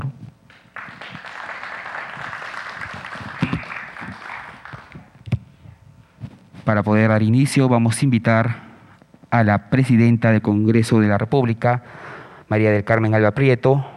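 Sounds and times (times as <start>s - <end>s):
audience applause: 0.5s - 5.1s
speech: 6.7s - 8.6s, 9.3s - 13.9s.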